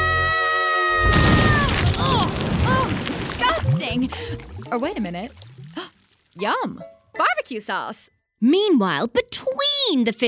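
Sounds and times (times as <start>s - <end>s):
barbecue exploding with a sudden loud boom: 1.1s - 3.6s
dense sustained crashing rumble: 1.1s - 5.8s
speech: 3.9s - 5.5s, 6.4s - 10.2s.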